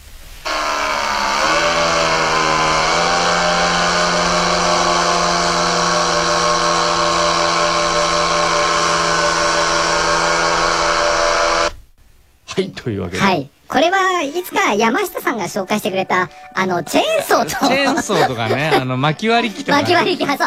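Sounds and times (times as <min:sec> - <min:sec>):
paramotor propeller roar: 0:00.4 - 0:11.8
laughter: 0:00.5 - 0:10.3, 0:17.3 - 0:20.4
small two-stroke paramotor engine droning: 0:00.5 - 0:11.8
speech: 0:12.9 - 0:20.4.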